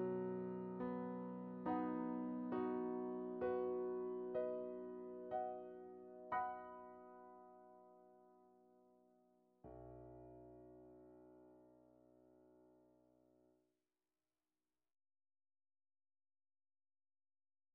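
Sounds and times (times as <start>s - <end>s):
MIDI piano: 0.0s - 13.4s.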